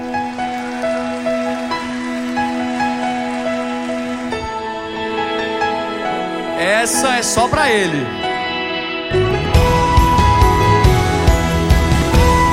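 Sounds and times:
crowd applause: 0.0 - 8.1, 9.5 - 12.5
sustained musical chords: 0.0 - 12.5
speech: 6.8 - 8.3.

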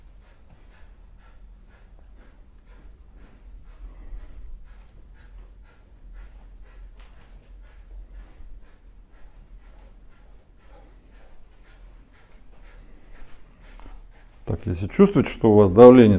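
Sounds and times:
kapalabhati rapid forceful nasal exhalations: 0.0 - 15.5
speech: 14.6 - 16.1.

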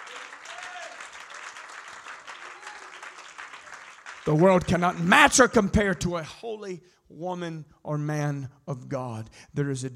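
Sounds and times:
audience clapping hands: 0.0 - 5.5
speech: 4.2 - 9.9.

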